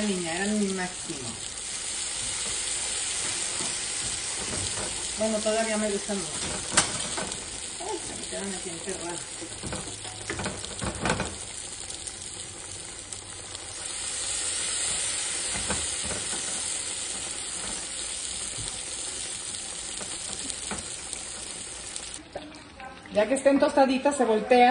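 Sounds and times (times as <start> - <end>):
speech: 0.0 - 1.6, 4.8 - 6.9, 8.3 - 9.8, 23.2 - 24.7
food frying in hot oil until crisp: 0.0 - 24.4.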